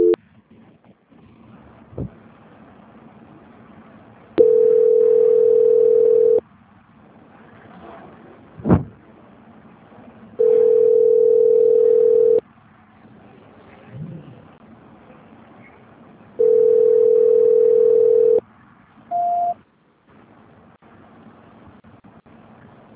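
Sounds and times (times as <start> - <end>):
telephone tones while a call is being transferred: 4.4 - 6.4, 10.4 - 12.4, 16.4 - 18.4, 19.1 - 19.6.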